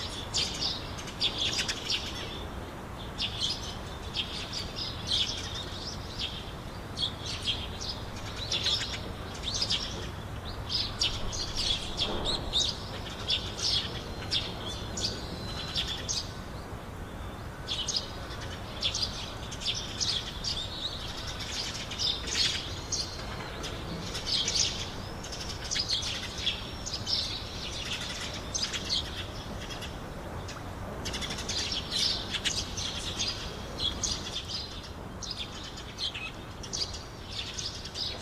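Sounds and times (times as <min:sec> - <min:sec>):
birds in Takamatsu: 0:00.0 - 0:38.2.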